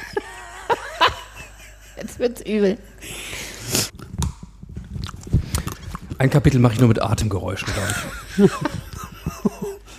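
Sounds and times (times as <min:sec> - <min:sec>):
speech: 0:02.2 - 0:03.2, 0:06.2 - 0:08.9
chewing peanuts with open mouth: 0:03.9 - 0:06.9.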